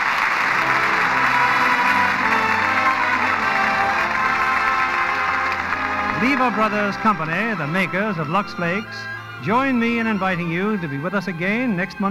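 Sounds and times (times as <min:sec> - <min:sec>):
studio audience applause: 0:00.0 - 0:07.8
speech: 0:06.2 - 0:12.0.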